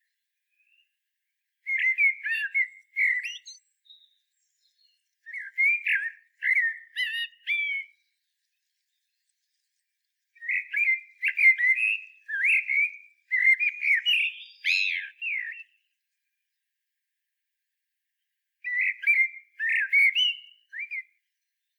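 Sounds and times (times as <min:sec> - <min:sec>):
common blackbird warbling song: 0:01.6 - 0:15.9, 0:18.6 - 0:21.7.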